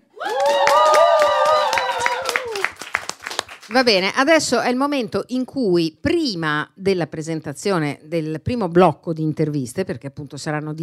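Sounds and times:
audience applause: 0.2s - 3.7s
speech: 3.7s - 10.8s.

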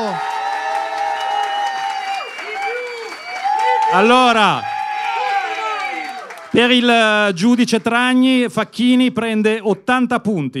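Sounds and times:
cheering and whooping voices: 0.0s - 7.1s
audience applause: 0.0s - 8.4s
speech: 3.9s - 4.7s, 6.6s - 10.5s.

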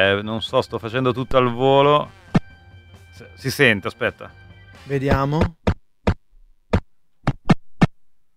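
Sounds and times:
speech: 0.0s - 2.2s, 3.2s - 5.6s
video game ball kicking sounds: 5.1s - 7.9s.

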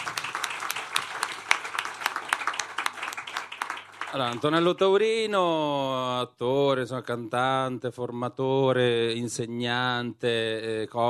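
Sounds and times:
audience applause: 0.0s - 4.9s
speech: 4.1s - 11.0s.

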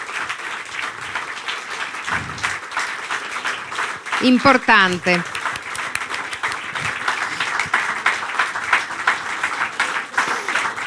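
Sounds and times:
audience applause: 0.0s - 10.8s
speech: 4.2s - 5.4s.

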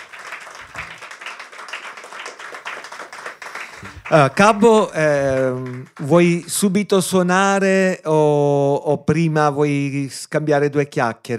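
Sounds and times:
applause: 0.0s - 6.8s
speech: 3.8s - 11.3s.

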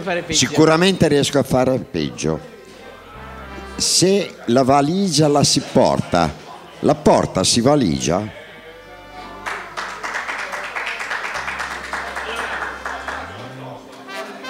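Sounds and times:
speech: 0.0s - 2.5s, 3.8s - 8.4s
audience applause: 9.4s - 13.7s.

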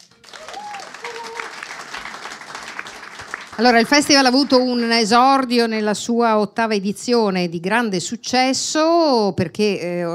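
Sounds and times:
audience applause: 0.0s - 4.4s
speech: 3.6s - 10.1s.

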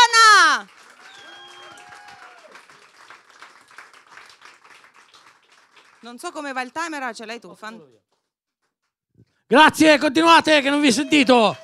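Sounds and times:
audience applause for a comedian: 0.0s - 6.4s, 10.7s - 11.6s
speech: 6.0s - 8.2s, 9.5s - 11.6s.

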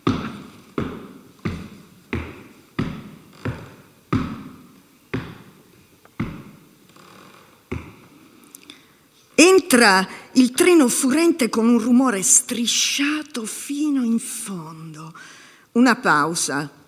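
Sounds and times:
dark shoes thudding down metro stairs: 0.0s - 6.7s, 7.7s - 8.1s
speech: 9.4s - 16.8s.

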